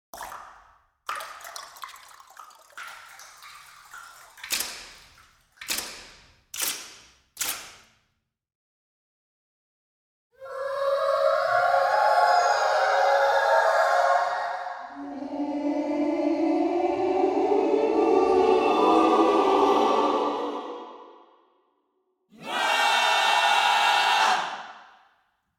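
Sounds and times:
choral vocal effects: 10.4s - 24.9s.

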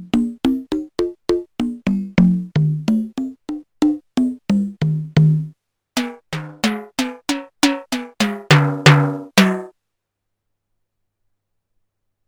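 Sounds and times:
drum machine sounds being tuned: 0.0s - 9.7s.

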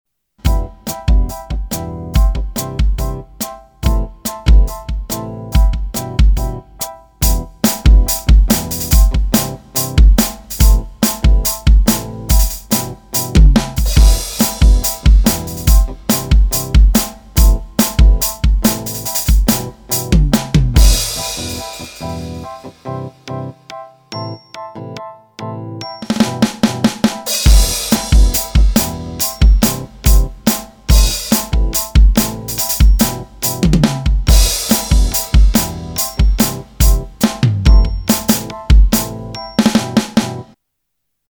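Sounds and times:
Behringer XD80USB groovy playalong beat: 0.4s - 25.1s, 26.0s - 40.6s.

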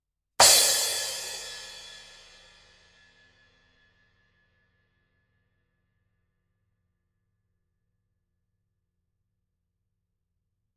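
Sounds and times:
cymbal: 0.4s - 4.0s.

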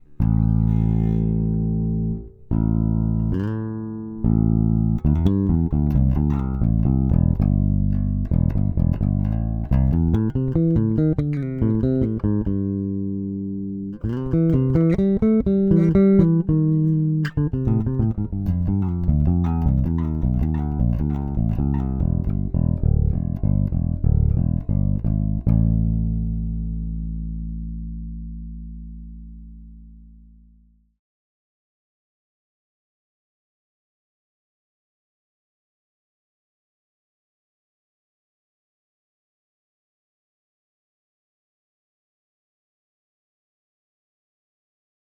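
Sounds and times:
MTD 535 electric bass with clean tone: 0.0s - 30.9s.

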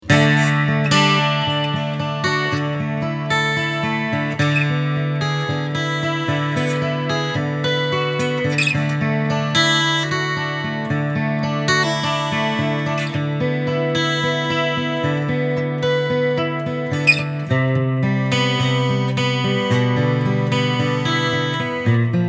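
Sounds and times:
Lava ME2 guitar with reverb and chorus effects: 0.0s - 22.2s.

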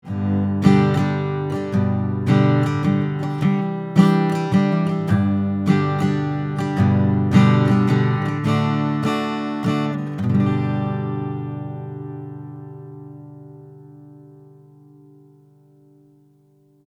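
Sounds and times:
acoustic guitar strumming: 0.0s - 16.8s.

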